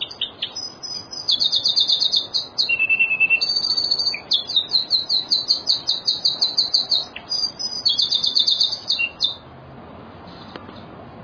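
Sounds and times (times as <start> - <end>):
bird song with long high trilled phrases: 0.0 - 9.4.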